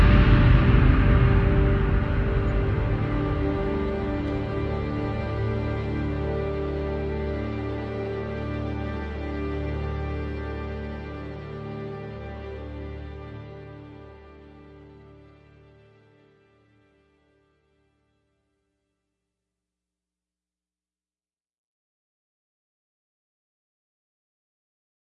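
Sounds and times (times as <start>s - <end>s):
strings playing: 0.0s - 17.3s.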